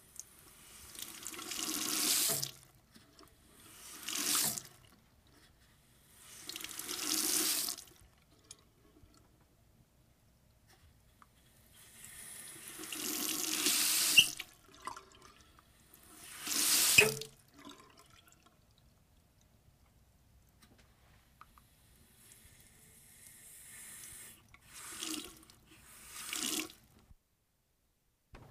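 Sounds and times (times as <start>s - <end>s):
water running from a pipe faucet: 0.4s - 2.6s, 3.6s - 4.7s, 6.3s - 8.0s, 12.4s - 15.2s, 15.9s - 17.3s, 24.6s - 26.8s.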